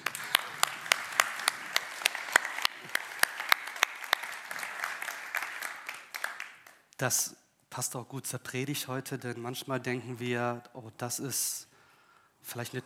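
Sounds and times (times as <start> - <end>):
audience applause: 0.0 - 6.8
speech: 7.0 - 11.7, 12.4 - 12.8.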